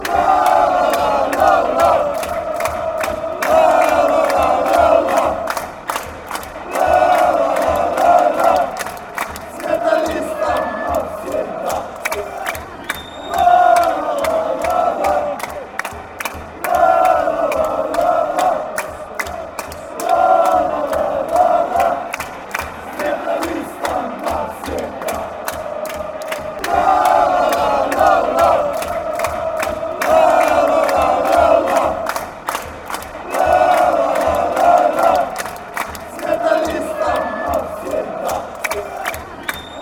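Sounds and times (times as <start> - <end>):
chanting: 0.0 - 39.8.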